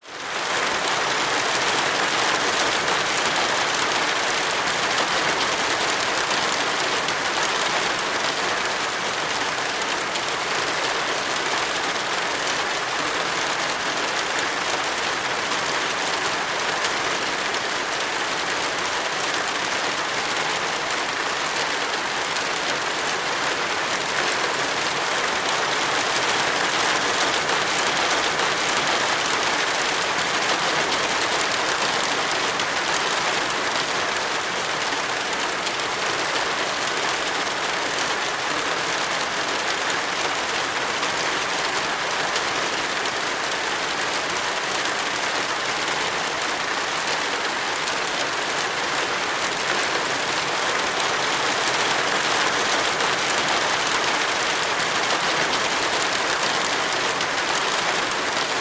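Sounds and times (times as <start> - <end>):
rain falling on verandah roof: 0.0 - 58.5.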